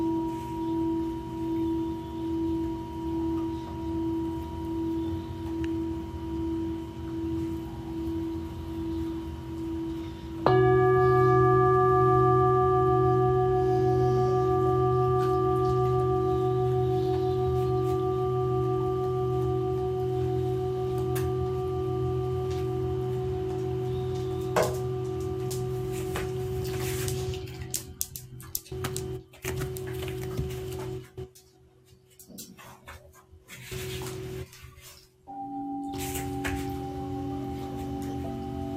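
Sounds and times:
singing bowls ringing for sound healing: 0.0 - 31.4, 33.7 - 38.7.

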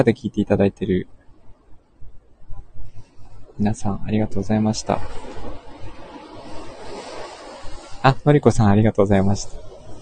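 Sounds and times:
speech: 0.0 - 1.2, 3.6 - 5.4, 8.0 - 9.7
ocean waves at the seashore: 2.4 - 9.9.

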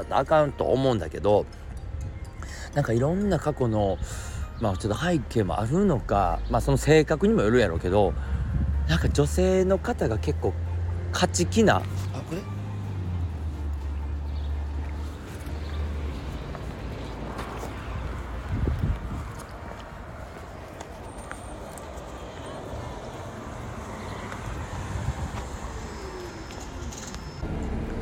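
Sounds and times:
speech: 0.0 - 1.6, 2.7 - 12.6
bus interior road and engine roar while riding: 0.0 - 28.0.

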